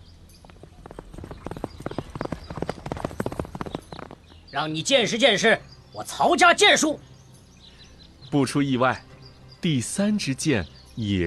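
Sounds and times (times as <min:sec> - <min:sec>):
horse hooves as general Cao Hong rides forward: 0:00.0 - 0:04.5
speech: 0:04.5 - 0:07.1, 0:08.3 - 0:11.2.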